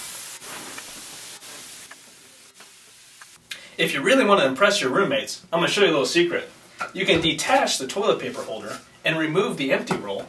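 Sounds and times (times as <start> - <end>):
aerosol air freshener spray hissing: 0.0 - 3.4
speech: 3.8 - 10.2.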